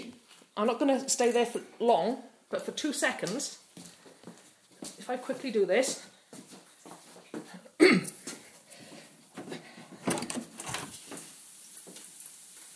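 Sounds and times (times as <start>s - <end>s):
speech: 0.6s - 3.9s, 5.1s - 6.1s
rain leaking indoors: 10.5s - 12.7s.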